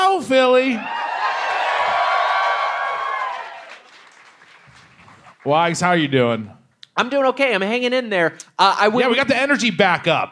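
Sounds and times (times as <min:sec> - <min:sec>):
speech: 0:00.2 - 0:01.0, 0:05.4 - 0:10.3
live crowd cheering and whooping: 0:00.7 - 0:04.1.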